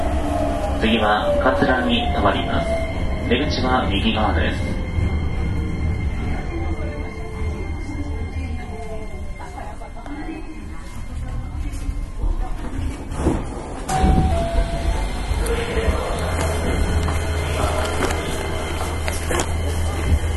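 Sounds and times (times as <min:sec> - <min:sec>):
Hankyu 9300 series train running: 0:00.0 - 0:20.3
faint voices murmuring: 0:00.0 - 0:20.3
speech: 0:00.8 - 0:04.7.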